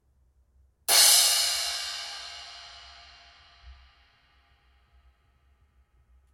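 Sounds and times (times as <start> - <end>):
Zildjian EFX 14 cymbal: 0.9 - 4.5.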